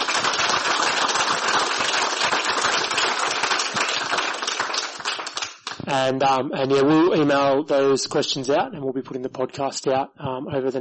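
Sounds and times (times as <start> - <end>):
crowd applauding: 0.0 - 5.8
speech: 5.9 - 10.7.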